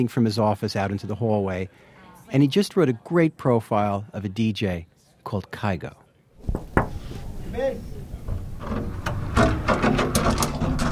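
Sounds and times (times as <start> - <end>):
speech: 0.0 - 6.6, 7.5 - 8.0
creaky office door opening: 8.3 - 10.8.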